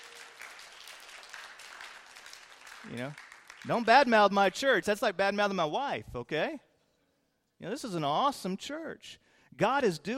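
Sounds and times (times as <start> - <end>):
crowd applauding: 0.0 - 4.1
speech: 2.8 - 6.7, 7.6 - 10.1.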